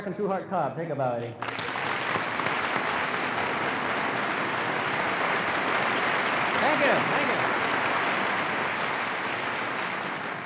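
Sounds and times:
speech: 0.0 - 1.7, 6.8 - 7.3
audience applause: 1.4 - 10.4.

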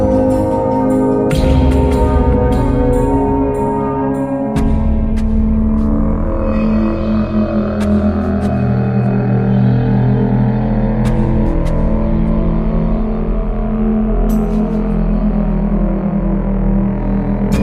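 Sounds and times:
ambient music: 0.0 - 17.6.

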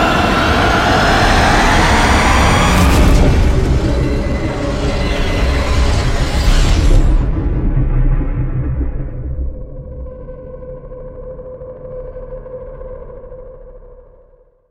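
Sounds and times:
incoming projectile: 0.1 - 9.9.

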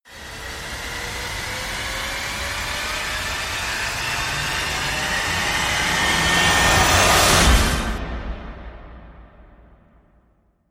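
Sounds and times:
short rising sound: 1.3 - 9.7.

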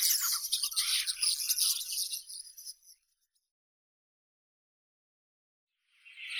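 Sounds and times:
common starling Sturnus vulgaris: 0.0 - 2.1.

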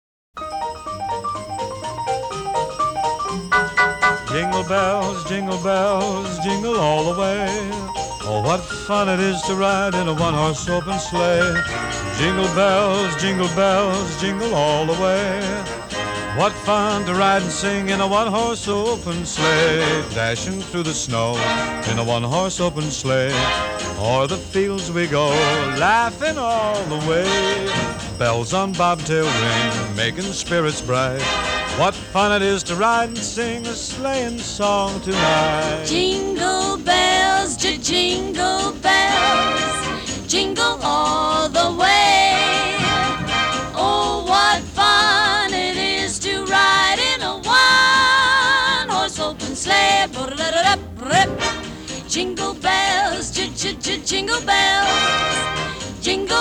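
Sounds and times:
Christmas song: 0.4 - 56.3.

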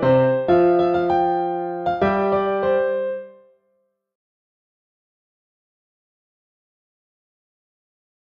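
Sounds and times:
piano instrumental: 0.0 - 3.6.

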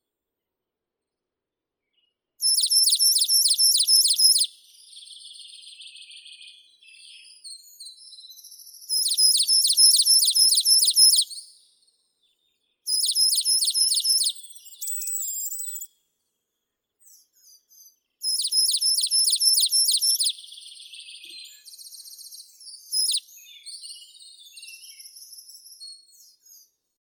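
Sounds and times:
coal tit Periparus ater calling: 2.4 - 4.5, 8.9 - 11.3, 12.9 - 15.6, 18.2 - 20.4, 22.9 - 23.2.

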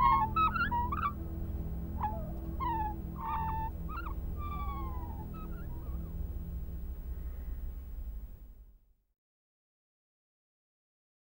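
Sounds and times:
birdsong: 0.0 - 8.3.

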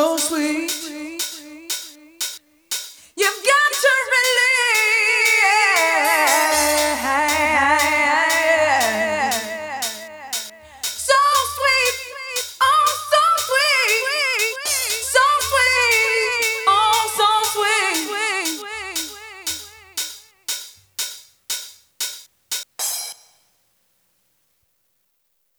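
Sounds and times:
a cappella singing: 0.0 - 2.2, 3.2 - 20.0.

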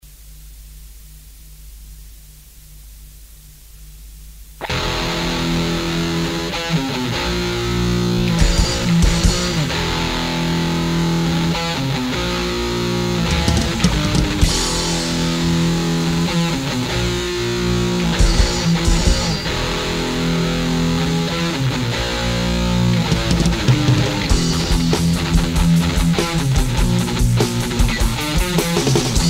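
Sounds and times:
instrumental music: 4.6 - 29.2.

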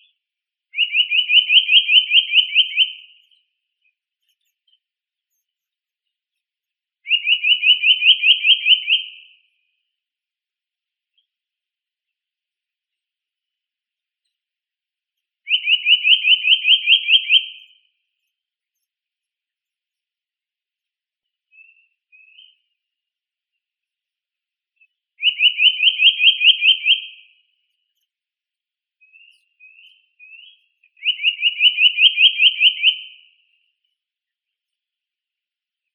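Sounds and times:
Eurasian nuthatch Sitta europaea calling: 0.8 - 3.4, 7.0 - 9.1, 15.5 - 17.8, 25.2 - 27.1, 29.1 - 33.0.

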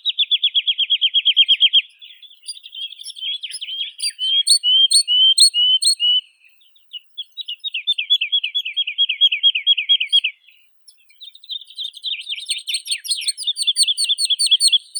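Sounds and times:
woodlark Lullula arborea singing: 0.0 - 14.9.

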